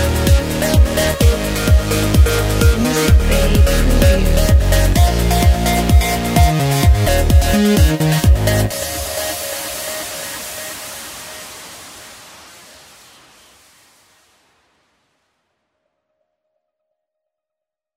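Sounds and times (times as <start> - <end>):
wild bass line: 0.0 - 9.3.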